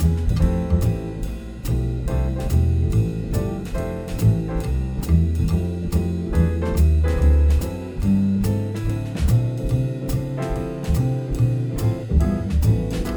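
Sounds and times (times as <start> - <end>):
swing rhythm section: 0.0 - 13.1.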